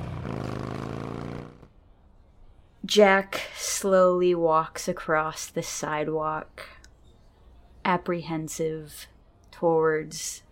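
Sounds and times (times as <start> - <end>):
motorbike engine kick-started and speeding off: 0.0 - 1.8
speech: 2.9 - 6.7, 7.9 - 10.5.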